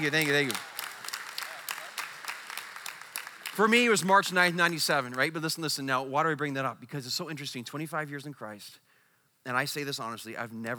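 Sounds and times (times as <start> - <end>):
speech: 0.0 - 0.7, 3.6 - 8.8, 9.4 - 10.7
audience clapping: 0.0 - 5.6.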